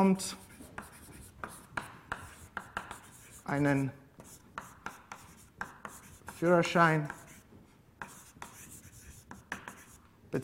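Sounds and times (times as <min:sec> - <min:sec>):
speech: 0:00.0 - 0:00.4, 0:03.5 - 0:04.0, 0:06.4 - 0:07.2
handwriting scratches: 0:00.3 - 0:10.0.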